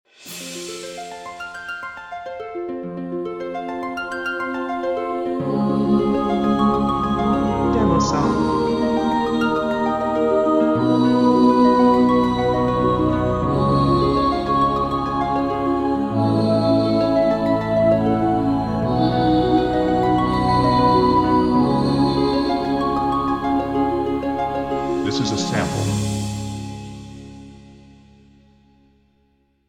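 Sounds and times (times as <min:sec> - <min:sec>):
harp: 0:00.3 - 0:28.2
choir: 0:04.3 - 0:26.7.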